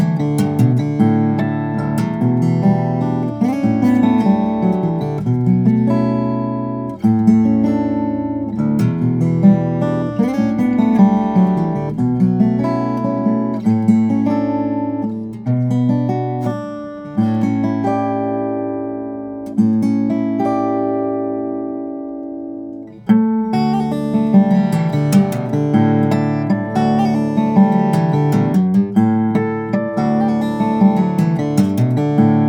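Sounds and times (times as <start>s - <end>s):
steel string flattop guitar of African blackwood and alpine moonspruce: 0.0s - 32.4s.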